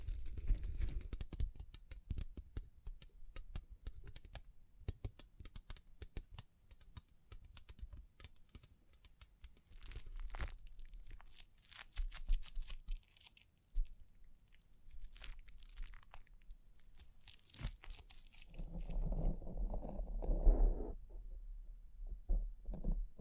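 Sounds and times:
crinkling and brushing: 0.0 - 1.2, 9.4 - 21.1
taps and scratches: 0.0 - 14.0, 17.0 - 21.0, 22.3 - 23.1.

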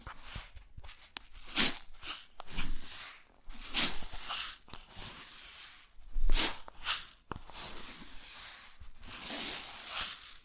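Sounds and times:
grains rustling and shifting: 1.4 - 5.8, 6.4 - 10.4.

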